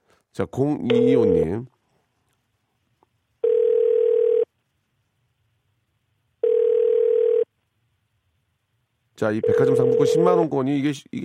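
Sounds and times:
speech: 0.4s - 1.8s, 9.2s - 11.2s
telephone calling tone: 3.4s - 4.5s, 6.4s - 7.5s, 9.4s - 10.4s.

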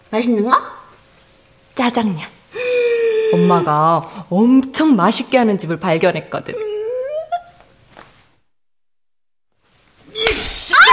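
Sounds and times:
speech: 0.1s - 0.8s, 1.8s - 2.4s, 3.3s - 6.7s
slap in a Korean drama scene: 10.2s - 10.8s.

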